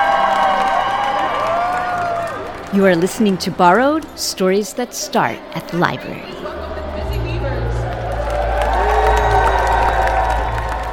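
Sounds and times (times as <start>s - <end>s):
loud cheers in the lobby of Central Library: 0.0s - 2.8s, 6.4s - 10.9s
speech: 2.7s - 6.6s.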